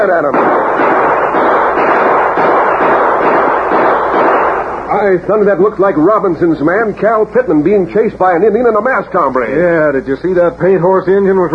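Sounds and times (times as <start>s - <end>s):
speech: 0.0s - 0.9s, 5.0s - 11.5s
gunshots: 0.0s - 5.2s.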